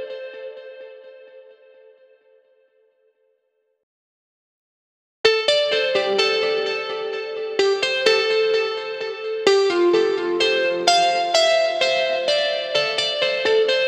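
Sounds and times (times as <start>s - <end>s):
melody: 5.3s - 13.8s.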